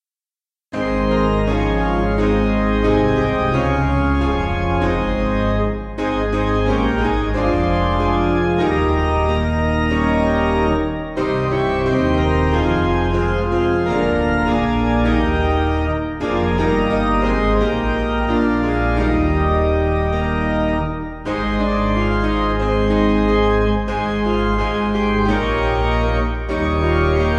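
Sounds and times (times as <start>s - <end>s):
church piano backing: 0.7s - 27.3s.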